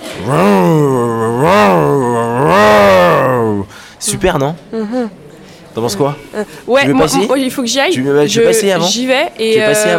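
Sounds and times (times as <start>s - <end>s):
voice imitating a chainsaw: 0.1s - 3.7s
speech: 0.2s - 1.0s, 4.2s - 5.2s, 5.8s - 9.9s.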